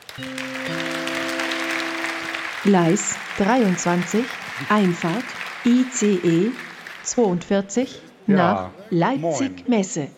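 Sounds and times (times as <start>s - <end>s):
audience clapping after a talk: 0.0s - 7.9s
speech: 0.2s - 0.5s, 2.6s - 10.1s.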